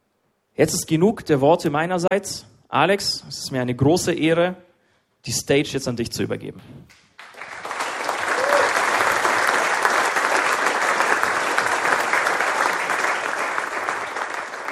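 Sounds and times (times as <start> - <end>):
speech: 0.6 - 7.0
audience applause: 7.2 - 14.7.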